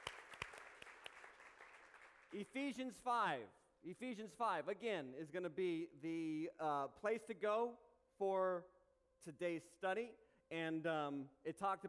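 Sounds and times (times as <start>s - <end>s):
congregation applause welcoming a remote church campus: 0.0s - 2.5s
speech: 2.3s - 11.8s.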